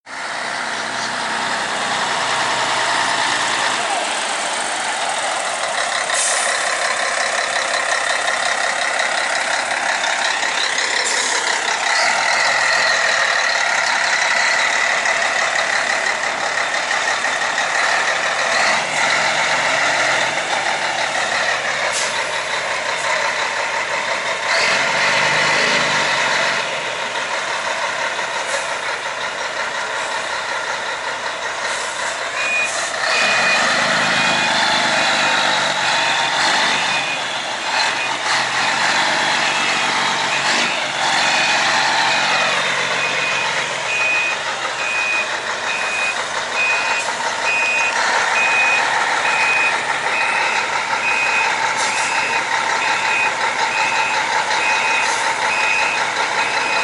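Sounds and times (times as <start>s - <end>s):
Scania K113CL: 0.0s - 56.8s.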